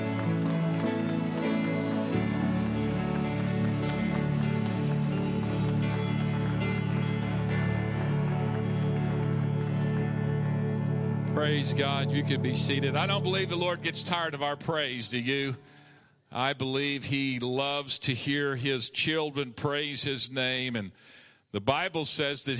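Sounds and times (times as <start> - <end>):
audience clapping: 0.0 - 15.5
speech: 11.4 - 22.5.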